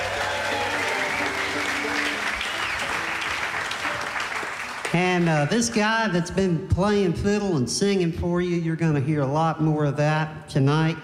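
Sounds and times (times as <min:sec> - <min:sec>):
audience applause at a live concert for the sound engineer: 0:00.0 - 0:05.9
speech: 0:05.0 - 0:11.0.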